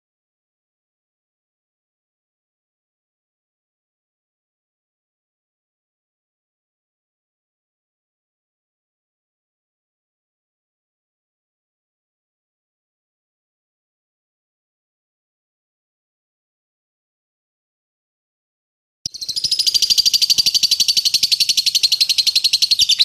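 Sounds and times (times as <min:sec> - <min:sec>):
songbird training song with whistles, buzzy phrase and high trill: 0:19.1 - 0:23.0.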